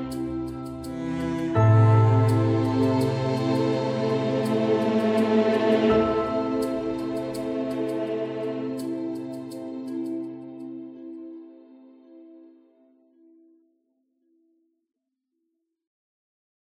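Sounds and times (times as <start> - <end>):
melancholy ambient game music: 0.0 - 13.6.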